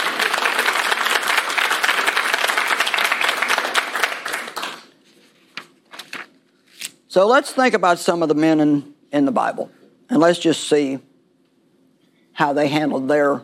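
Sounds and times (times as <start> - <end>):
audience clapping: 0.0 - 5.0
speech: 7.2 - 11.1, 12.4 - 13.4.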